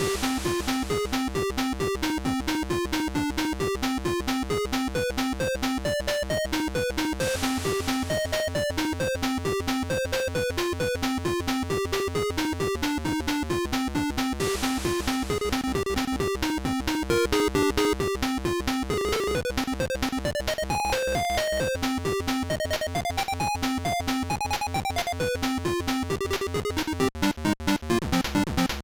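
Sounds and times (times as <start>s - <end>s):
8-bit chiptune: 0.0s - 28.8s.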